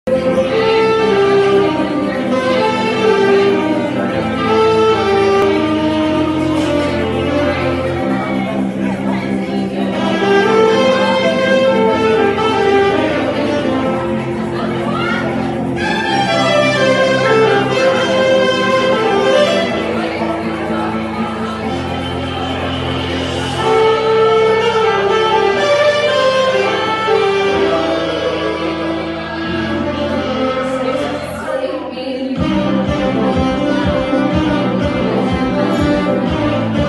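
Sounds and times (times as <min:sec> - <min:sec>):
live saxophone: 0:00.0 - 0:36.8.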